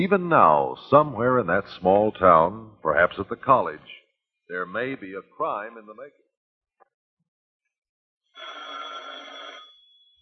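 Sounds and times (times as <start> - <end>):
speech: 0.0 - 6.2
telephone ringing: 8.4 - 10.2.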